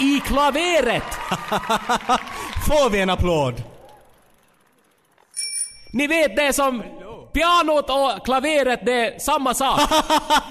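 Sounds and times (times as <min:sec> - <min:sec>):
laughter: 0:00.0 - 0:02.6, 0:09.7 - 0:10.4
speech: 0:00.0 - 0:03.7, 0:05.9 - 0:10.4
bicycle bell ringing: 0:05.2 - 0:06.4.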